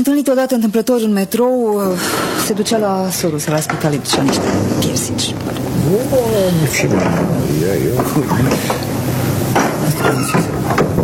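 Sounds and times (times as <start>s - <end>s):
speech: 0.0s - 9.0s, 10.0s - 10.8s
lift doors slamming in apartment block: 1.8s - 11.0s.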